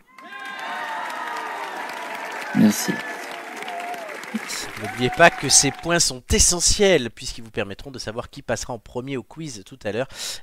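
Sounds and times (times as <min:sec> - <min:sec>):
audience applause: 0:00.0 - 0:06.1
speech: 0:02.5 - 0:03.2, 0:04.3 - 0:10.4.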